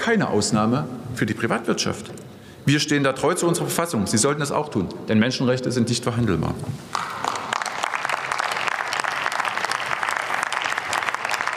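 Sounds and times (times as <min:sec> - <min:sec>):
speech: 0:00.0 - 0:07.2
applause in parliament: 0:06.9 - 0:11.5.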